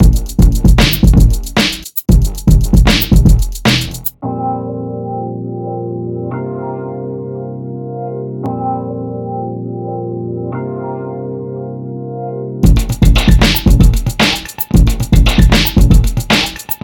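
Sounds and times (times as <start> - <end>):
beats: 0.0 - 4.2, 12.6 - 16.8.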